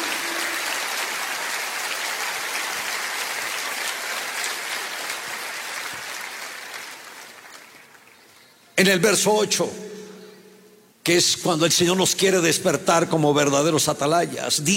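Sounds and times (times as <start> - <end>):
audience applause: 0.0 - 8.3
speech: 8.8 - 9.8, 11.1 - 14.7.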